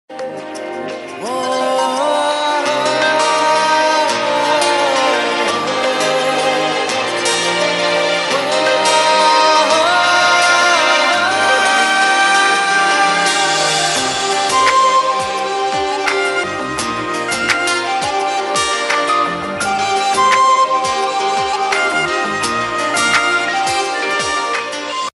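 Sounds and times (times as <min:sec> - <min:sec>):
background music tune: 0:00.1 - 0:25.1.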